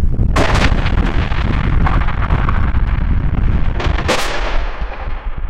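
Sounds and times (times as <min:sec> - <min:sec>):
big skyscraper falling crash: 0:00.2 - 0:05.4.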